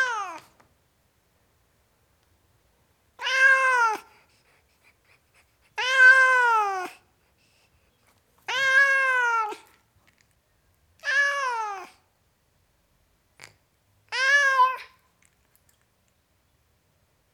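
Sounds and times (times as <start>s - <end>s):
tom cat meowing: 0.0s - 0.5s, 3.2s - 4.1s, 5.8s - 6.9s, 8.5s - 9.7s, 11.0s - 12.0s, 14.1s - 15.0s.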